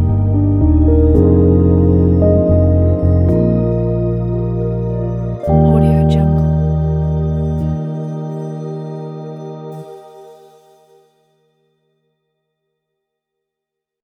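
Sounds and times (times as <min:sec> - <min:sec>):
romantic jazzy retro electric piano: 0:00.0 - 0:10.6.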